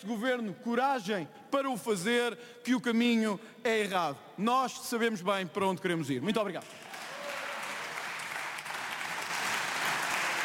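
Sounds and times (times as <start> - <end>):
speech: 0.0 - 6.9
standing applause from Chega parliament deputies: 6.6 - 10.4.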